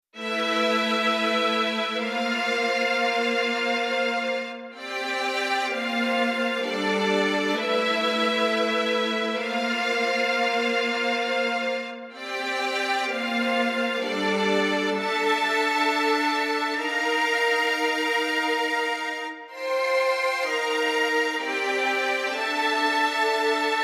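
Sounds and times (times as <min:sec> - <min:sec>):
strings: 0:00.2 - 0:23.8.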